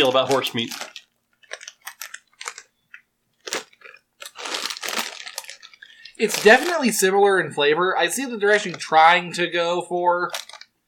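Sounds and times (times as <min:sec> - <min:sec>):
speech: 0:00.0 - 0:01.0, 0:06.2 - 0:10.4
flavored potato chips crunching: 0:00.0 - 0:07.2, 0:10.3 - 0:10.7.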